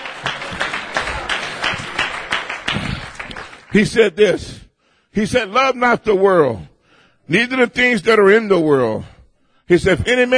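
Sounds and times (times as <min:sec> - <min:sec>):
people clapping: 0:00.0 - 0:04.2
speech: 0:03.7 - 0:04.6, 0:05.2 - 0:06.7, 0:07.3 - 0:09.1, 0:09.7 - 0:10.3.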